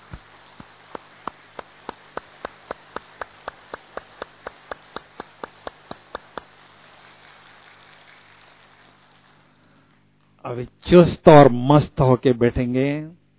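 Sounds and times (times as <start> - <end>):
group clapping hands loudly in unison: 0.6 - 6.6
speech: 10.5 - 13.2.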